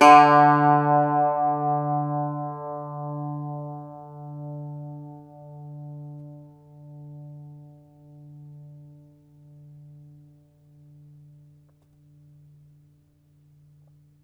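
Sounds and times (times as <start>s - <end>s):
Irish bouzouki plucked strings: 0.0s - 7.4s.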